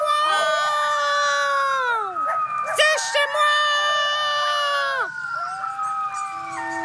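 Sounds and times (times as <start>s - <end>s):
coyote howling: 0.0s - 6.8s.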